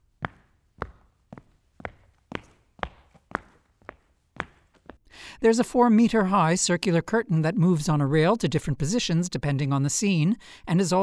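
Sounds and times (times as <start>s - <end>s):
footsteps on a hexagonal parquet stage floor: 0.0s - 5.0s
speech: 5.4s - 11.0s.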